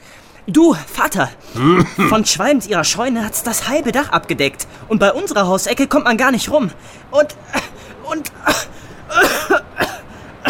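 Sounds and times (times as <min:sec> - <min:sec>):
speech: 0:00.4 - 0:09.6
coughing: 0:01.5 - 0:02.4, 0:07.5 - 0:10.4.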